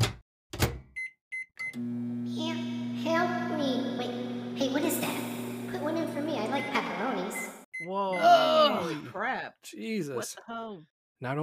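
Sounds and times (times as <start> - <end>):
microwave short high-pitched beeps: 1.0 - 2.2, 6.3 - 8.6
microwave oven running with low electric hum: 1.8 - 7.6
speech: 9.7 - 11.4.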